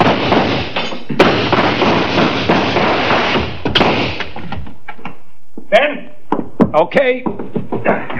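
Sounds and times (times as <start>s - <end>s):
gunshots: 0.0s - 4.4s
speech: 6.8s - 8.1s.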